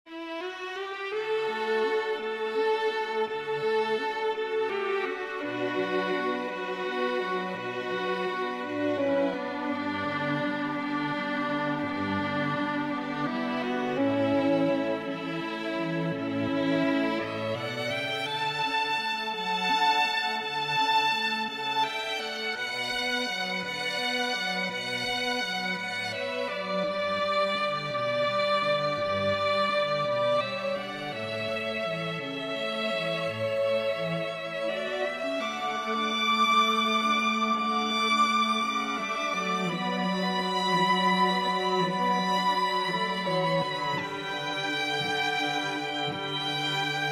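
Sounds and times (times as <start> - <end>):
string quartet: 0.0 - 47.1.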